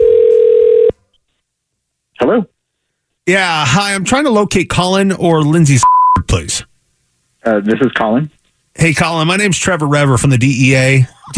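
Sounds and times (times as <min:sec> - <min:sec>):
telephone dial tone of an outgoing call: 0:00.0 - 0:01.0
speech: 0:02.3 - 0:02.5, 0:03.2 - 0:06.7, 0:07.4 - 0:11.3.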